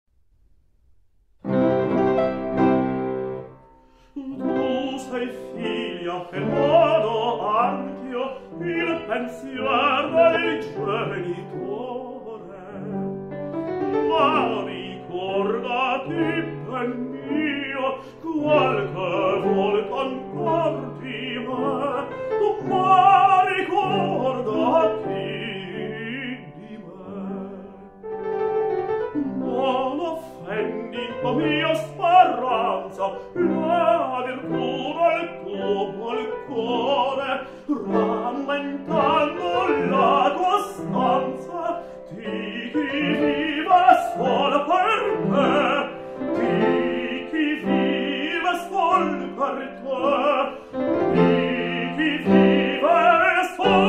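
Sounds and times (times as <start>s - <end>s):
piano: 0.1s - 53.8s
soprano singing: 1.5s - 53.8s.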